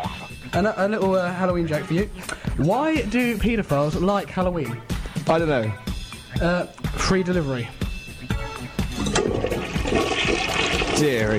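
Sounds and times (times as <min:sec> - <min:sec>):
speech: 0:00.6 - 0:07.8, 0:11.0 - 0:11.3
toilet flushing: 0:08.8 - 0:11.3.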